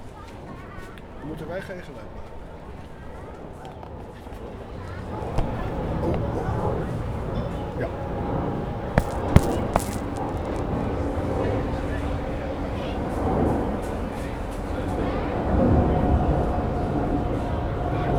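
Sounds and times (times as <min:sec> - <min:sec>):
speech: 0:01.2 - 0:02.4
airplane passing overhead: 0:04.6 - 0:18.1.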